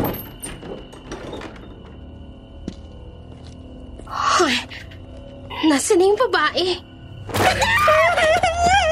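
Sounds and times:
door pulled open with a creaking squeal: 0.0 - 2.3
speech: 5.6 - 6.9, 7.5 - 8.8.

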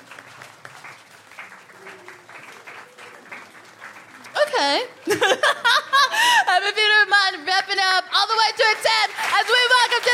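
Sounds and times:
audience clapping calmly: 0.0 - 10.1
speech: 4.6 - 5.8, 6.6 - 10.1
laughter: 5.0 - 6.7.

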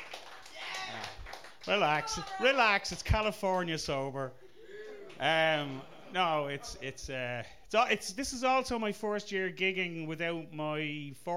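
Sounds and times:
audience clapping: 0.0 - 3.7
speech: 1.7 - 4.4, 5.2 - 11.3.

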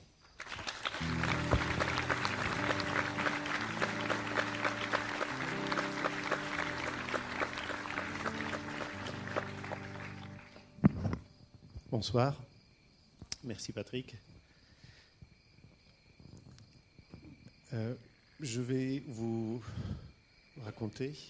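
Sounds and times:
audience applauding loudly: 0.4 - 10.8
speech: 12.0 - 12.4, 13.5 - 14.3, 17.8 - 20.1, 20.8 - 21.2.

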